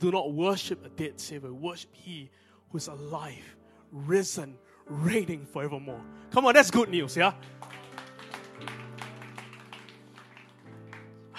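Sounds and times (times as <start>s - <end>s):
speech: 0.0s - 7.8s
light golf clap from audience: 6.7s - 11.3s.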